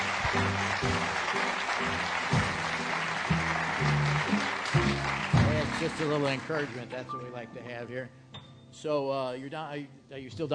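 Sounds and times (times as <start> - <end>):
audience applause: 0.0 - 7.1
speech: 5.8 - 8.2, 8.8 - 10.5.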